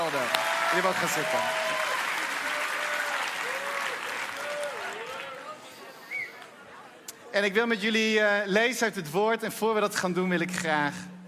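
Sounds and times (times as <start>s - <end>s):
audience applause: 0.0s - 5.6s
speech: 0.1s - 1.8s, 7.4s - 11.1s.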